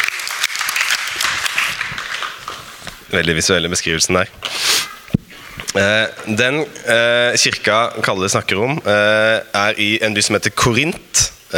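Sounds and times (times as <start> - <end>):
applause: 0.0 - 3.1
speech: 3.1 - 4.6, 5.8 - 11.5.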